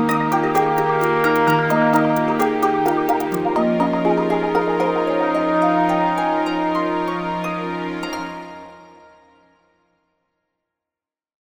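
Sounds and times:
character theme music: 0.0 - 7.3.

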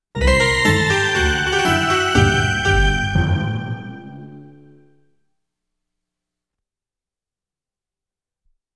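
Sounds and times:
defeat jingle: 0.2 - 5.0.

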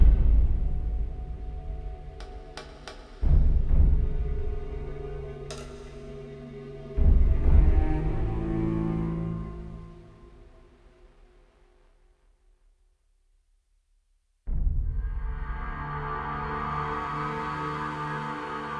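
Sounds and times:
ambient fight theme music: 0.0 - 10.7, 14.5 - 18.7.

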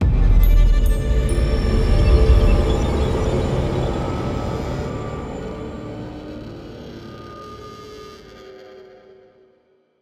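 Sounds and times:
success music: 0.2 - 7.4.

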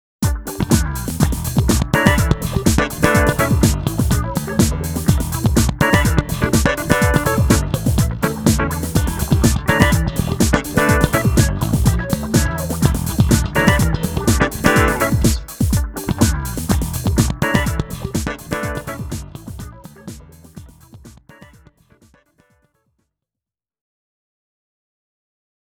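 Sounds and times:
results screen background music: 0.2 - 16.3, 17.2 - 19.4.

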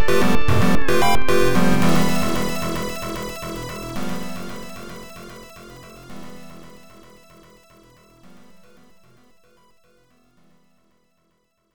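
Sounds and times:
RPG battle music: 0.0 - 6.7.

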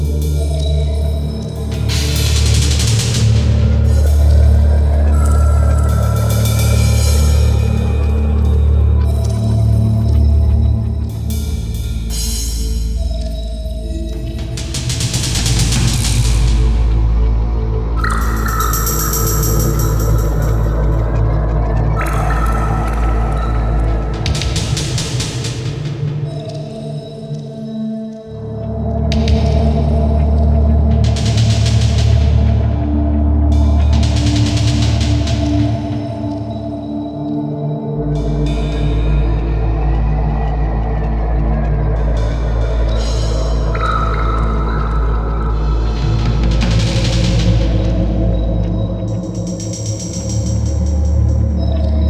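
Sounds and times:
underwater ambience: 0.1 - 52.0.

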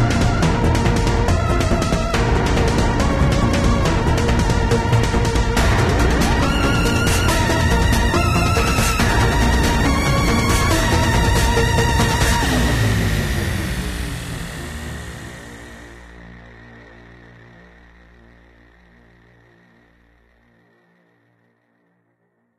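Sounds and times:
battle music: 0.0 - 16.3.

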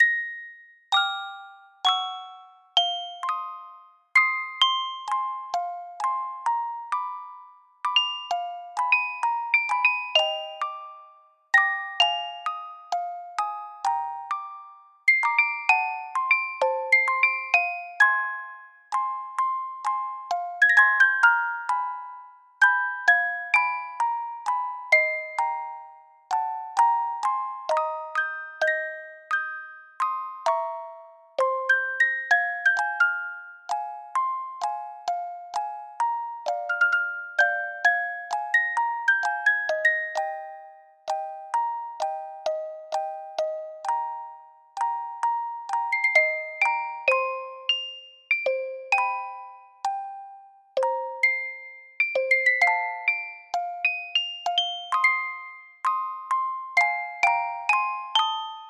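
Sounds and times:
moody music box melody: 0.0 - 58.6.

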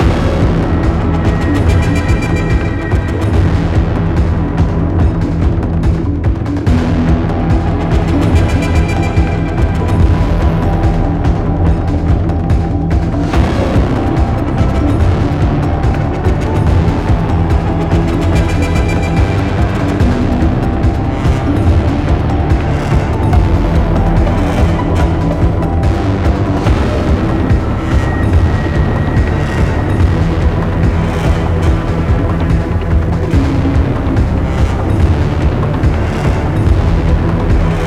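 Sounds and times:
high combat music: 0.0 - 37.8.

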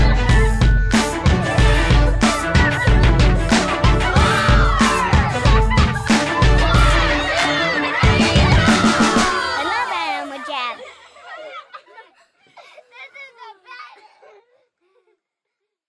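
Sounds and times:
anthem music: 0.0 - 10.2
laughter: 2.3 - 14.0.

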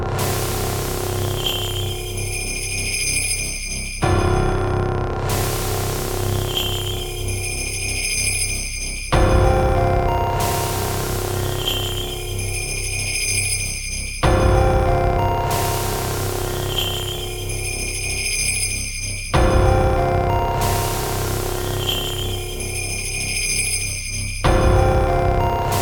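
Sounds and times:
prelude: 0.1 - 25.7.

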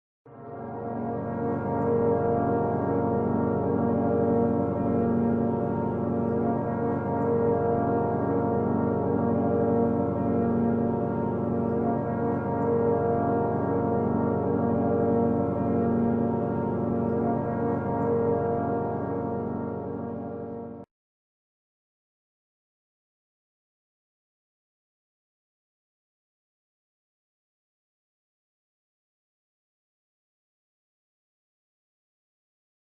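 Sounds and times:
brass instruments: 0.4 - 20.8.

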